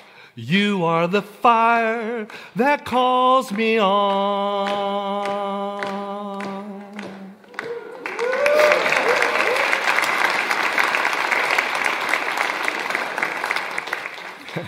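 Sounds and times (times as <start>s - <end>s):
speech: 0.4s - 7.0s
audience applause: 4.6s - 14.6s
faint cheers and whistles: 7.5s - 10.2s.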